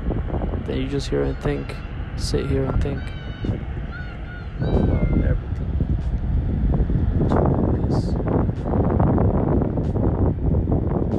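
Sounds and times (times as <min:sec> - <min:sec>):
ocean waves on a beach: 0:00.0 - 0:07.7
gusty wind: 0:00.0 - 0:11.1
speech: 0:00.7 - 0:03.8, 0:04.6 - 0:04.9.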